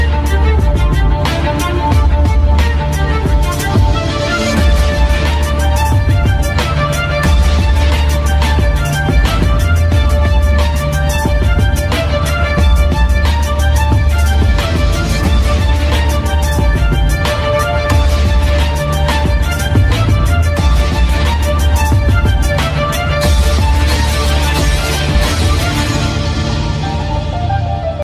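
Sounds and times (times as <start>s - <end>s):
killing music ringtone: 0.0s - 28.0s.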